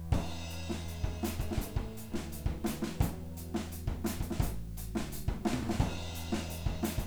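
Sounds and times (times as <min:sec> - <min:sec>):
full band playing in monitor mix: 0:00.1 - 0:07.0.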